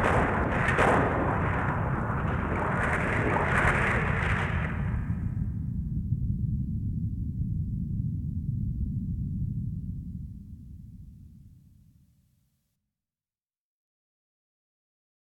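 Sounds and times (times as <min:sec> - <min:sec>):
building collapsing in an earthquake: 0:00.0 - 0:05.3
earthquake: 0:00.0 - 0:10.2.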